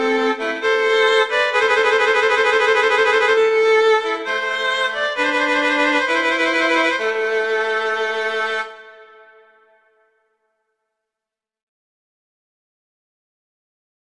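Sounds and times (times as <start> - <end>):
slow classical piece: 0.0 - 10.1.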